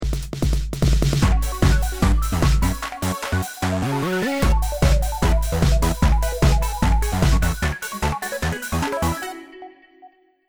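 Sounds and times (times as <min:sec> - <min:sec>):
ten second bomb timer countdown: 0:00.4 - 0:09.5.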